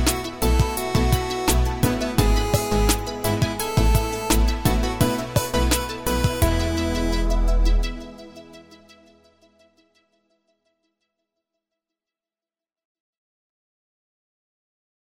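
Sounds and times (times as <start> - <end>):
instrumental music: 0.0 - 9.4.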